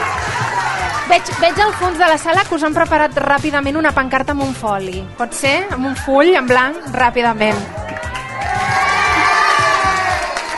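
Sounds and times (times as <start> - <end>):
audience cheering: 0.0 - 2.0, 7.7 - 10.5
speech: 1.1 - 7.8.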